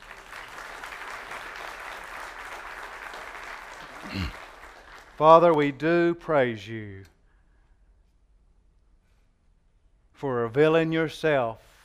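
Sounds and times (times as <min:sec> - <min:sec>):
audience clapping: 0:00.0 - 0:06.2
speech: 0:04.0 - 0:04.4, 0:05.2 - 0:07.1, 0:10.2 - 0:11.7.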